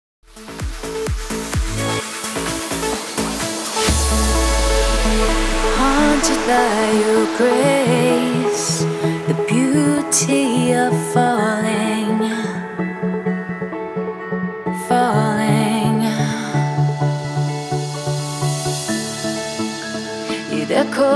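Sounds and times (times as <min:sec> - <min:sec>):
progressive electronic music at 128 BPM: 0:00.3 - 0:21.1.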